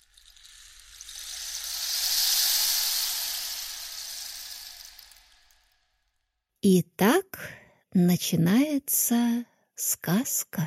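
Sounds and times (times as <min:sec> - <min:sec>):
rain stick instrument: 0:00.0 - 0:06.0
speech: 0:06.6 - 0:10.6.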